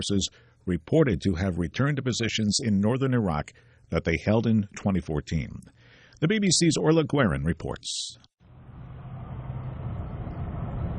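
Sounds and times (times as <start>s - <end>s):
speech: 0.0s - 8.3s
car driving along a deserted road into Kirkuk: 8.4s - 10.9s.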